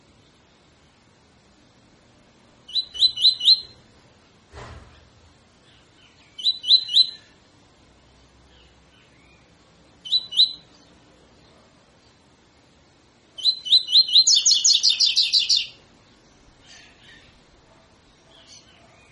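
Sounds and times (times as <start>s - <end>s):
double-collared seedeater tutor song: 2.6s - 3.8s, 4.9s - 7.4s, 8.0s - 12.3s, 13.4s - 19.0s.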